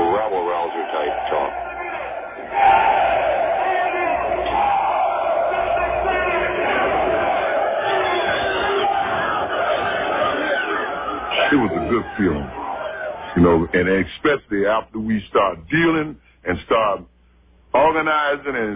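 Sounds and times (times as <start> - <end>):
large crowd shouting and roaring: 0.0 - 13.8
speech: 11.9 - 12.6, 13.4 - 17.1, 17.7 - 18.7.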